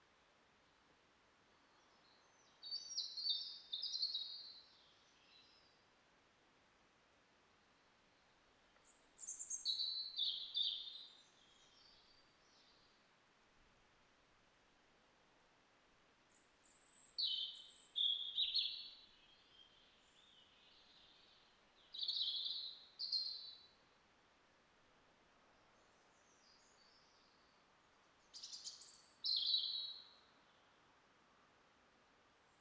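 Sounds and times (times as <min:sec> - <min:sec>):
soft hiss: 0:00.0 - 0:32.5
European robin singing: 0:01.8 - 0:05.8, 0:08.8 - 0:12.9, 0:16.3 - 0:23.8, 0:28.2 - 0:30.8.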